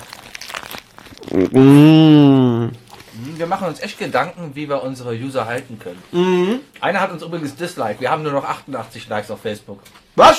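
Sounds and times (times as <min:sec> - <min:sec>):
biting into a doner kebab: 0:00.0 - 0:03.6
speech: 0:01.4 - 0:02.8, 0:03.4 - 0:10.3.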